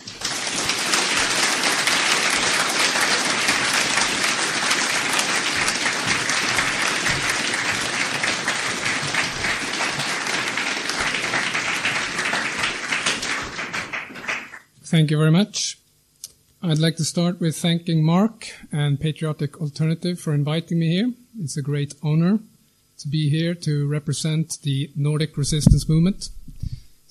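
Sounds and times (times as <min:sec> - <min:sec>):
audience applause welcoming a speaker at a political gathering: 0:00.0 - 0:14.7
speech: 0:15.0 - 0:15.8, 0:16.6 - 0:26.4.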